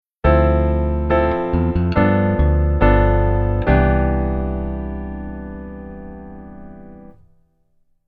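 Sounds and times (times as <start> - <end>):
keyboard rootless chord voicings: 0.2 - 7.3.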